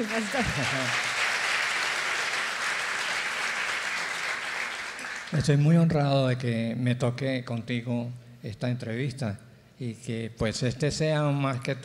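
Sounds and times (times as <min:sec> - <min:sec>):
speech: 0:00.0 - 0:01.1, 0:05.3 - 0:11.8
audience applause: 0:00.0 - 0:05.4
laughter: 0:00.2 - 0:01.1.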